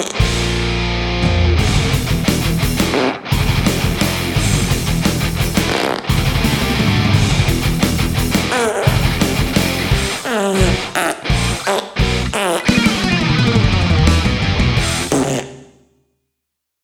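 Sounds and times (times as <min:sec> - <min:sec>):
fart: 0:00.0 - 0:00.4, 0:05.6 - 0:06.2, 0:08.3 - 0:13.1, 0:15.0 - 0:15.8
metal guitar riff: 0:00.0 - 0:15.3.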